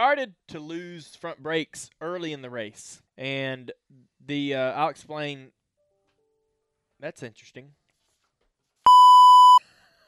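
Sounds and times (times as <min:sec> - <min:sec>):
speech: 0:00.0 - 0:05.6, 0:07.0 - 0:07.8
email notification beep: 0:08.9 - 0:09.6.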